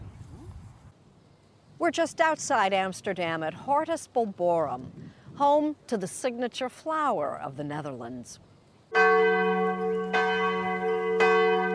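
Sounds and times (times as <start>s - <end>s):
speech: 1.8s - 9.5s
church bells ringing in village: 8.9s - 11.7s.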